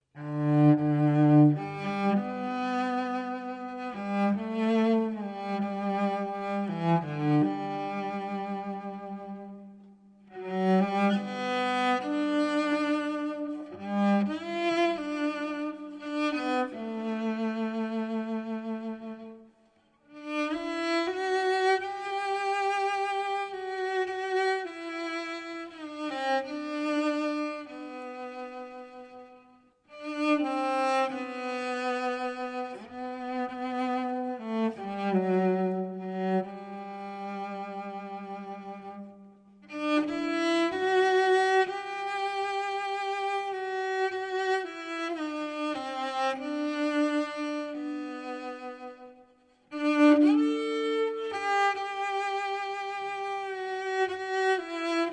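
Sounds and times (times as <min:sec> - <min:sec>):
solo cello: 0:00.0 - 0:55.1.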